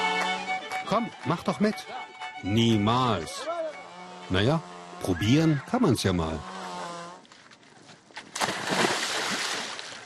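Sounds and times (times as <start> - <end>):
speech: 0.9 - 3.5, 4.3 - 6.5
water sloshing and churning: 6.6 - 10.0
person jumping into icy water: 8.2 - 10.0.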